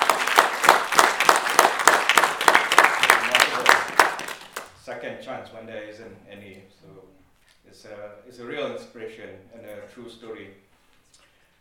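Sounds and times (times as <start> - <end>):
audience applause: 0.0 - 4.7
speech: 5.0 - 10.7.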